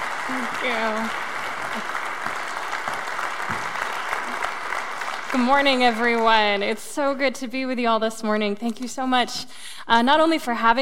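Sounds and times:
church congregation applause welcoming a guest speaker: 0.0 - 6.8
speech: 0.3 - 2.0, 5.3 - 10.7.

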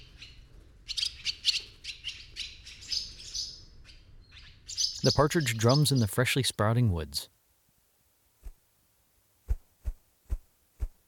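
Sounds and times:
swallows chattering about the barn: 0.0 - 6.2
speech: 5.0 - 7.4.

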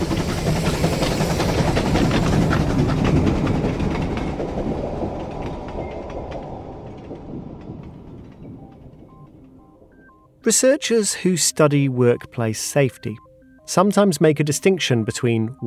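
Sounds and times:
train roaring past on rails: 0.0 - 10.0
speech: 10.5 - 15.6.

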